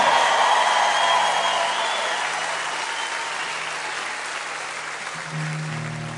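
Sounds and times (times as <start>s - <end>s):
concert crowd applauding: 0.0s - 6.1s.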